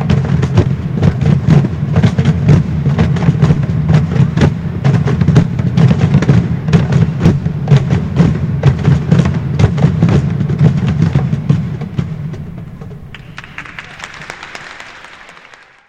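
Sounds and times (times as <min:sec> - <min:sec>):
cajons: 0:00.0 - 0:15.0.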